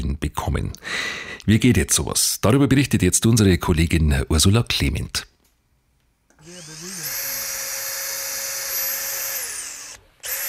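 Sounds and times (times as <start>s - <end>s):
speech: 0.2s - 5.3s
power screwdriver fixing reclaimed-wood terrace plank to a facade in Kempten: 6.4s - 10.4s.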